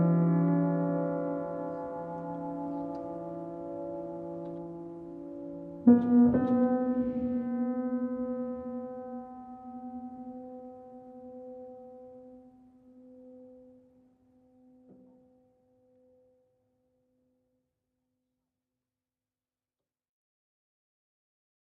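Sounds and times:
piano: 0.0s - 16.8s.

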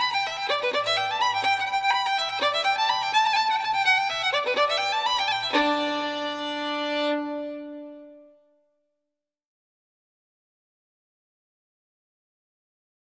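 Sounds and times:
solo fiddle playing reels: 0.0s - 8.2s.

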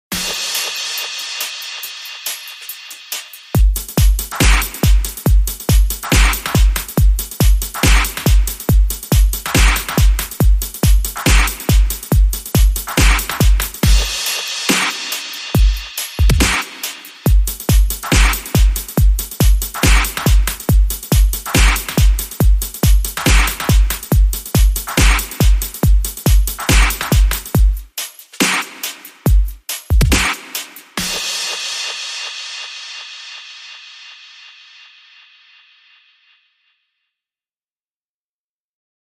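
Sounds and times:
beat: 0.1s - 34.9s.

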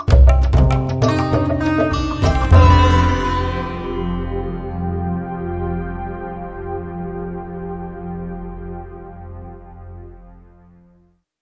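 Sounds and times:
weeping raga music: 0.0s - 8.6s
hit: 0.2s - 4.6s.

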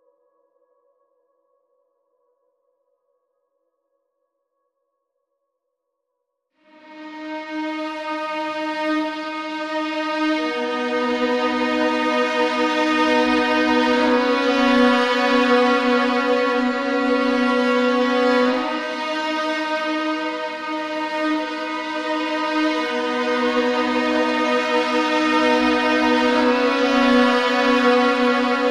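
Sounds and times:
string gestures: 6.8s - 28.6s.

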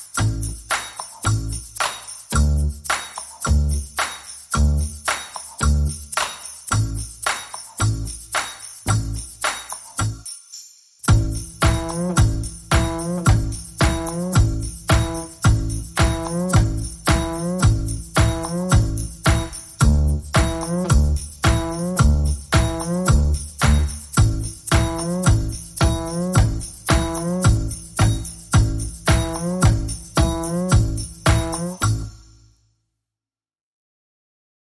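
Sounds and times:
bass: 0.0s - 10.3s, 11.1s - 32.4s
drums: 11.1s - 31.7s.

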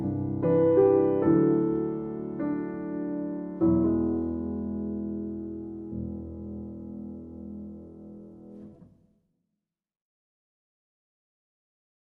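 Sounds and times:
solo piano piece: 0.0s - 8.9s.

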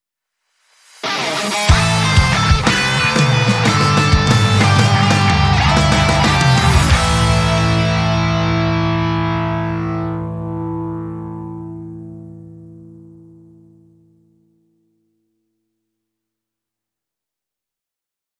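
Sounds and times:
hard rock strut music: 0.9s - 12.8s.

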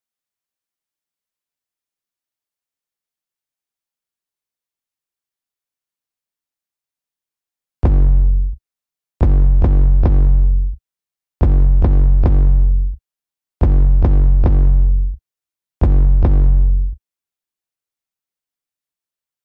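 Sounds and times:
bass: 7.8s - 8.6s, 9.2s - 10.8s, 11.4s - 13.0s, 13.6s - 15.2s, 15.8s - 17.0s.

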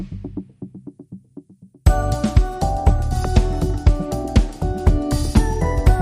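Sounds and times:
positive pulsing tone: 1.9s - 6.0s.

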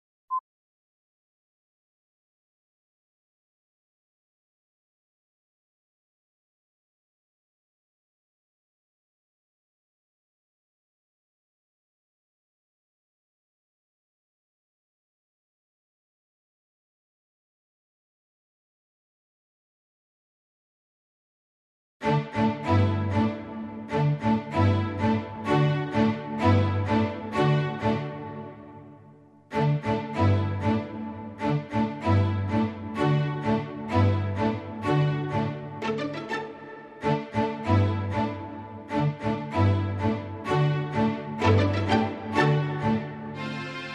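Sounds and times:
synth strings: 22.0s - 43.9s.

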